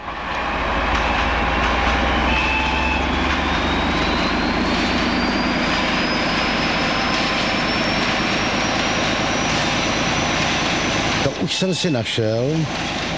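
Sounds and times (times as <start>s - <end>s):
Czech class 754 brejlovec diesel locomotive passing a level crossing: 0.0s - 13.1s
thin whine rising in pitch: 0.0s - 13.1s
speech: 11.6s - 13.0s.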